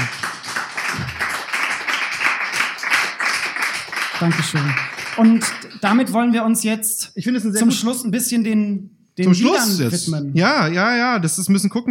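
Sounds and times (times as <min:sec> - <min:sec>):
audience applause: 0:00.0 - 0:06.1
speech: 0:04.2 - 0:11.8.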